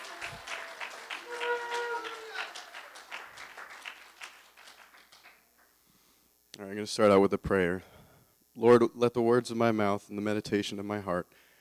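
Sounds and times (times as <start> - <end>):
audience clapping: 0.0 - 5.8
speech: 6.7 - 7.9, 8.6 - 11.4.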